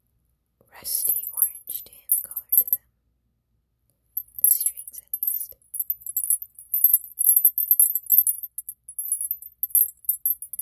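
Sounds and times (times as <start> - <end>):
speech: 0.6 - 2.8
anklet bells jingling: 1.0 - 2.8, 4.2 - 10.6.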